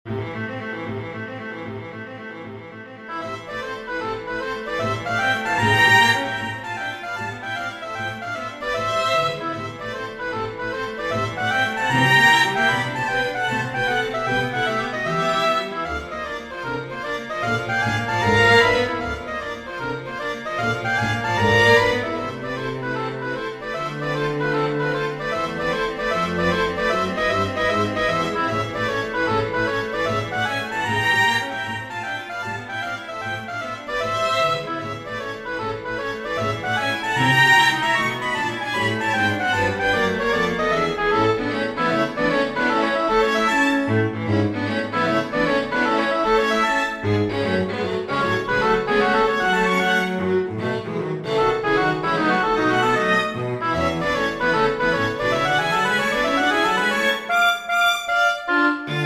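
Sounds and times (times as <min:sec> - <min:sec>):
scherzo for oboe and strings: 0:00.1 - 0:59.0.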